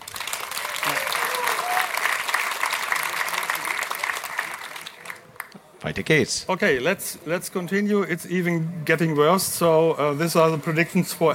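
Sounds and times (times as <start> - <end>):
audience applause for a speaker: 0.0 - 5.6
speech: 5.8 - 11.3.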